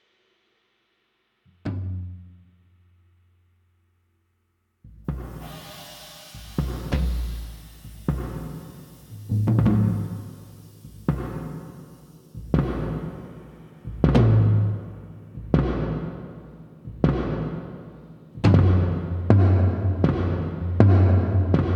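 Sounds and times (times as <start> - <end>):
drum solo: 4.9 - 21.7.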